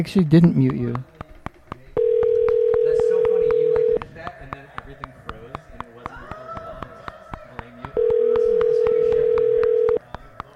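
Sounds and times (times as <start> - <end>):
speech: 0.0 - 1.1
telephone keypad beeps: 1.9 - 4.0, 8.0 - 10.0
telephone call tone: 2.0 - 4.0, 8.0 - 10.0.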